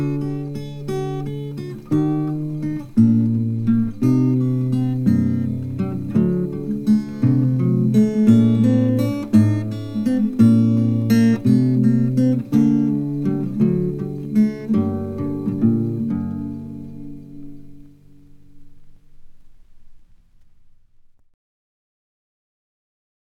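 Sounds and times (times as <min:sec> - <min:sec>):
gavotte on acoustic guitar: 0:00.0 - 0:21.4.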